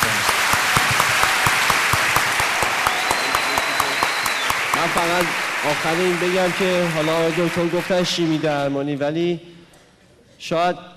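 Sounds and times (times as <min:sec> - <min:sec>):
talk show audience applause for medical staff: 0:00.0 - 0:08.7
speech: 0:04.8 - 0:09.5, 0:10.4 - 0:10.9.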